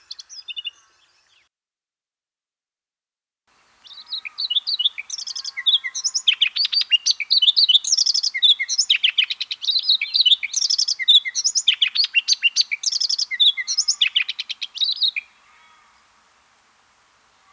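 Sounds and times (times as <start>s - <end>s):
Redthroat singing: 3.9s - 15.4s.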